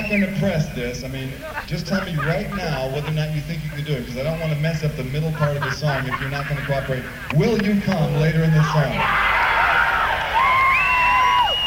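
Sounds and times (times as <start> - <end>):
speech: 0.1 - 9.4
laughter: 0.4 - 8.8
audience at a live music show cheering: 1.4 - 11.6.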